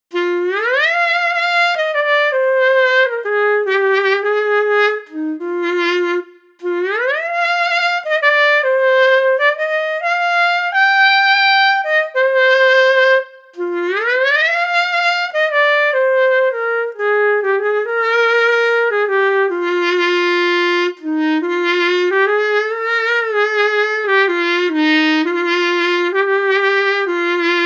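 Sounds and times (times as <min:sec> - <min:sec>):
clarinet: 0:00.1 - 0:27.6.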